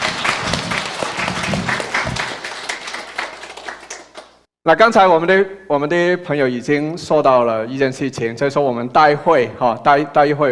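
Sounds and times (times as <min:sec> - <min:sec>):
warm applause from audience: 0:00.0 - 0:04.4
speech: 0:04.7 - 0:10.5.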